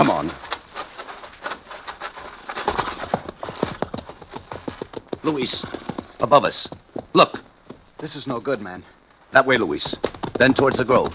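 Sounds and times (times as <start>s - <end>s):
speech: 0.0s - 0.4s, 5.2s - 7.4s, 8.0s - 11.1s
hoofbeats of an approaching horseman's mount: 0.0s - 11.1s.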